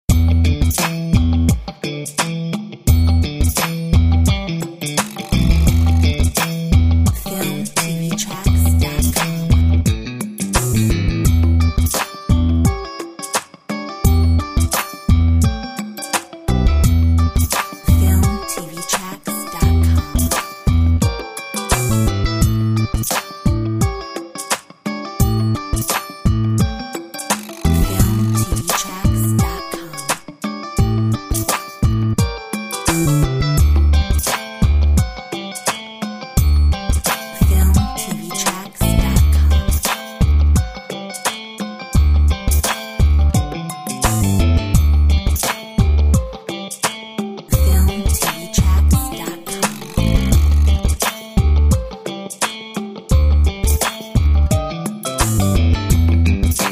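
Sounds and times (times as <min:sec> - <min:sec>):
nu funk music: 0:00.1 - 0:56.6.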